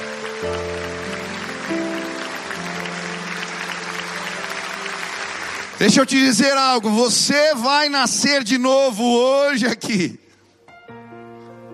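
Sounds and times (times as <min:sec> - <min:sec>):
audience applauding: 0:00.0 - 0:07.6
speech: 0:05.8 - 0:10.2.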